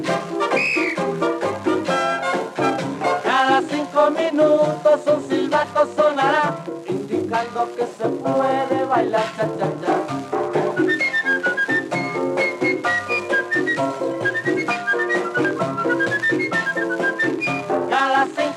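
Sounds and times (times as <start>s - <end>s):
busy, rhythmic cha-cha-cha dance music: 0.0s - 18.5s
shrill whistle blown in a stepping, repeated melody: 0.5s - 1.1s, 10.8s - 17.7s.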